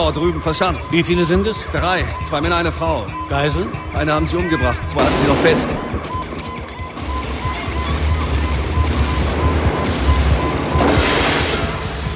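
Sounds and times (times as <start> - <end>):
speech: 0.0 - 6.1
sustained fusillade of rapid gunfire in a shootout on a construction site: 5.0 - 5.8, 6.9 - 12.0.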